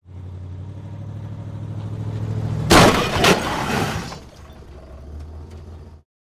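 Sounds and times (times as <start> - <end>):
moving vehicle colliding with stationary vehicle in reverse gear: 2.7 - 5.8.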